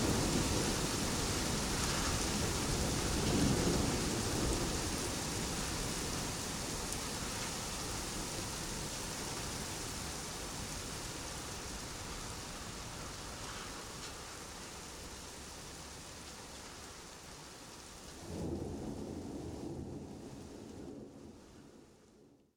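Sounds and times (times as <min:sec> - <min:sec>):
thunder: 0:00.0 - 0:04.8, 0:18.2 - 0:22.0
rain: 0:00.0 - 0:22.5.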